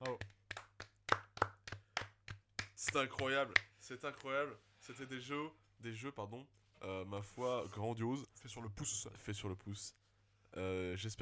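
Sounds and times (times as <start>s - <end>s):
person clapping hands: 0.0s - 4.3s
speech: 2.8s - 11.1s.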